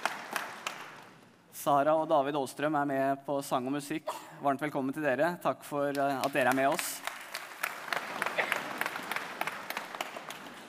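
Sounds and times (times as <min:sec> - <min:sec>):
audience applause for an evening speaker at a live event: 0:00.0 - 0:01.4, 0:05.9 - 0:10.6
speech: 0:01.6 - 0:07.1.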